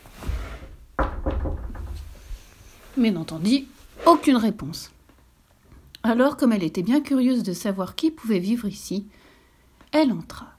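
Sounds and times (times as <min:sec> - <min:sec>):
knocking on the door of the three bears' house: 0:01.0 - 0:02.2
speech: 0:03.0 - 0:05.0, 0:06.0 - 0:09.2, 0:09.9 - 0:10.5.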